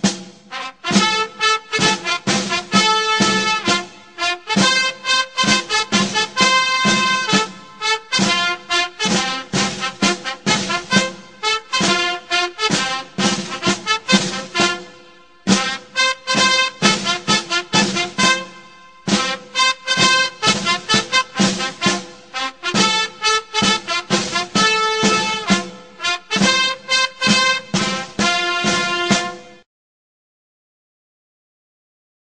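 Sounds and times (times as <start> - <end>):
military bugle call: 0.0 - 29.6.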